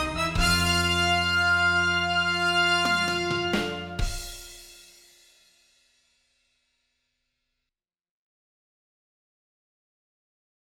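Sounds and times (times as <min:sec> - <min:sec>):
horns in fifths: 0:00.0 - 0:04.8.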